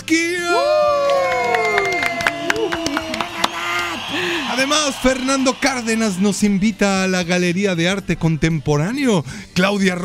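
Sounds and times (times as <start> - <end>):
speech: 0.1 - 0.4, 4.6 - 10.0
audience applause and cheering: 0.5 - 7.1.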